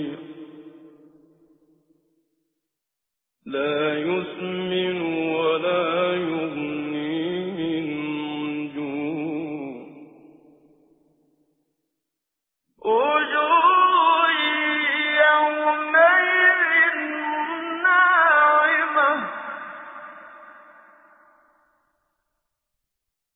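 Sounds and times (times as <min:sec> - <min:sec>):
tajwid recitation of a Quran surah: 0:00.0 - 0:01.0, 0:03.5 - 0:10.3, 0:12.8 - 0:21.3.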